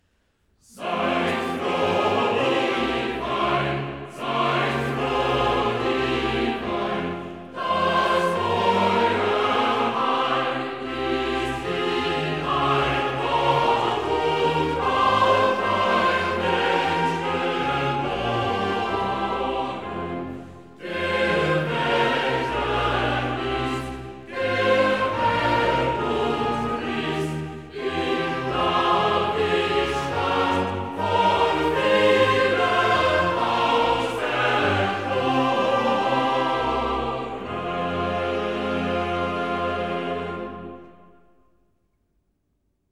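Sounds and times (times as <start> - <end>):
chorale: 0.0 - 41.6.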